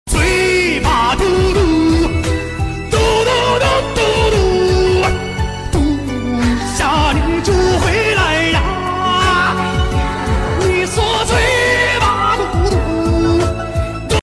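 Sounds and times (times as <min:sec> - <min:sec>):
person singing a Chinese wood song: 0:00.1 - 0:14.2.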